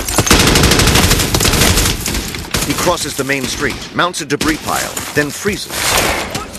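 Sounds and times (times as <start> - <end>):
automatic gunfire in a war audio drama: 0.1 - 2.9
speech: 2.7 - 6.2.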